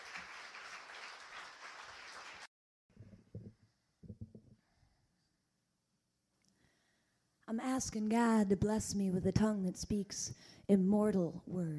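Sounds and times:
audience applause: 0:00.0 - 0:02.5
speech: 0:07.5 - 0:11.7.

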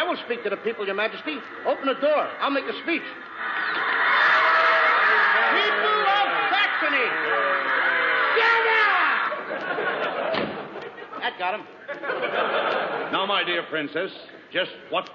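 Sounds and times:
crowd of people shouting: 0:00.0 - 0:10.3
laughter: 0:00.0 - 0:13.7
speech: 0:00.2 - 0:03.7, 0:06.8 - 0:07.8, 0:08.4 - 0:09.9, 0:11.2 - 0:15.1.

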